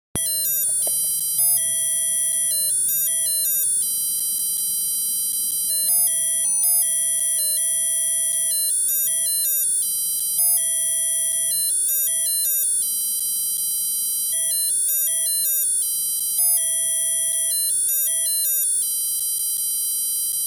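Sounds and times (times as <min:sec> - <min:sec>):
alarm: 0:00.2 - 0:20.4.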